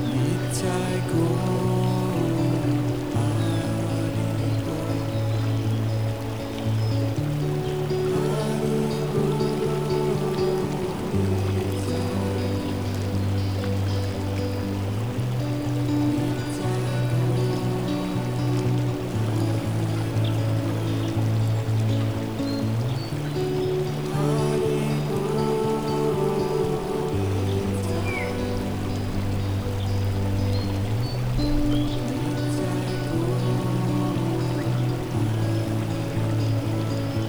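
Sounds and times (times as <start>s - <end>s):
gentle relaxing melody: 0.0s - 37.2s.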